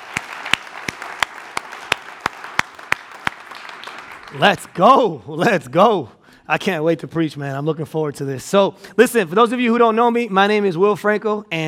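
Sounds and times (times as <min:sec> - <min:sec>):
audience applause: 0:00.0 - 0:05.1
loud sharp rhythmic clap: 0:00.0 - 0:05.2
speech: 0:04.3 - 0:11.6.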